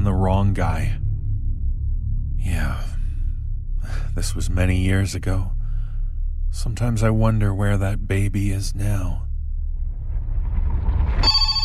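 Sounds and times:
low rumbling background: 0.0 - 11.6
speech: 0.2 - 1.0, 4.2 - 5.6, 6.5 - 9.3
mobile phone ringing: 11.2 - 11.6.

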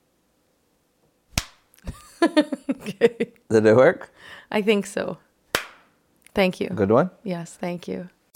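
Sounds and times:
single loud hand clap with both hands: 1.4 - 1.6, 5.5 - 5.9
speech: 2.2 - 5.2, 6.4 - 8.2.

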